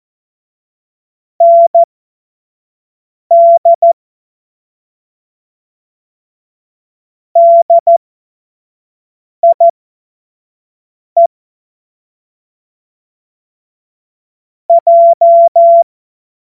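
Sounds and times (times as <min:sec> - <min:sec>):
morse code CW: 0:01.4 - 0:01.9, 0:07.4 - 0:08.0, 0:09.4 - 0:09.7, 0:14.7 - 0:15.8.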